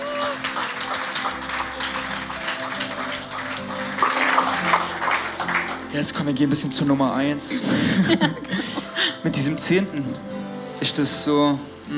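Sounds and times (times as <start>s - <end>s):
whoops and cheers: 0.0s - 0.9s
audience applause: 0.0s - 6.3s
speech: 6.0s - 11.9s
laughter: 7.4s - 10.1s.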